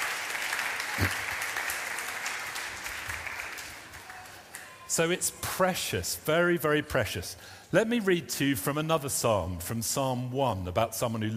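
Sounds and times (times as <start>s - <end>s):
audience applause: 0.0s - 4.9s
speech: 1.0s - 1.2s, 5.0s - 11.3s.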